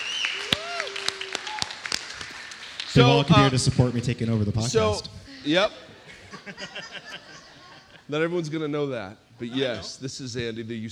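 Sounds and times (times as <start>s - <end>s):
audience clapping: 0.0s - 4.2s
speech: 3.0s - 6.8s, 8.1s - 10.9s
laughter: 5.7s - 8.1s.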